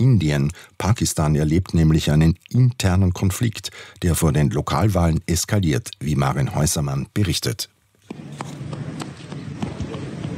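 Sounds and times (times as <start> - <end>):
hiss: 0.0 - 10.3
speech: 0.2 - 8.2
small boy running across a square in Muzaffarabad, Kashmir: 8.1 - 10.3.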